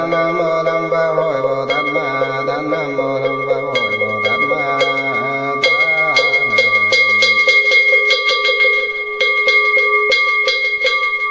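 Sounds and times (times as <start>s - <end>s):
low chanting voice: 0.0s - 8.1s
ritual bell struck in Buddhist chanting: 0.0s - 11.2s.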